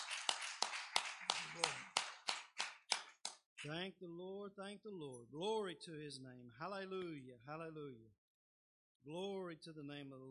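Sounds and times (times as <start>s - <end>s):
audience hand clapping: 0.0s - 3.8s
speech: 3.6s - 8.2s, 9.0s - 10.2s.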